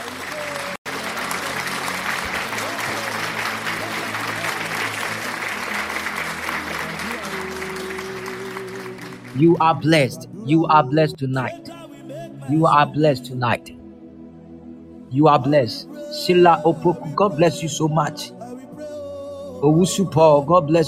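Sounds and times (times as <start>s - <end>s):
audience clapping hands: 0.0s - 10.0s
speech: 9.4s - 11.7s, 12.5s - 13.8s, 15.1s - 18.4s, 19.6s - 20.8s.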